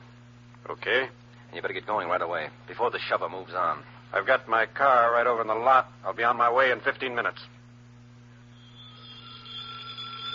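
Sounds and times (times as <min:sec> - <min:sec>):
speech: 0:00.6 - 0:07.6
low hum: 0:07.8 - 0:10.3
telephone ringing: 0:08.6 - 0:10.3.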